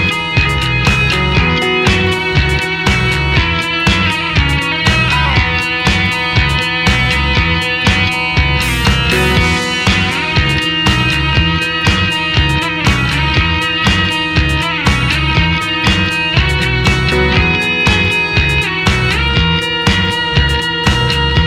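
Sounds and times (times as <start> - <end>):
ebow guitar: 0.0 - 21.4.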